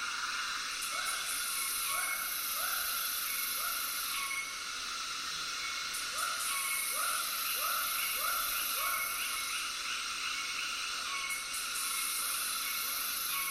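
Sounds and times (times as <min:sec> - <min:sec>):
frogs calling in a tropical soundscape: 0:00.0 - 0:13.5.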